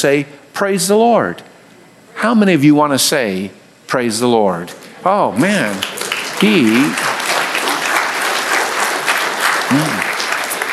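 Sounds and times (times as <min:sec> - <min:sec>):
speech: 0:00.0 - 0:01.5, 0:02.2 - 0:07.1
crowd applauding: 0:05.4 - 0:10.7.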